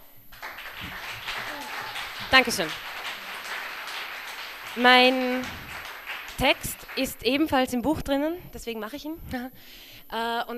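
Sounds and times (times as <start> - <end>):
audience applause: 0.3 - 7.7
laughter: 0.4 - 6.9
speech: 2.3 - 2.9, 4.8 - 5.6, 6.4 - 10.5.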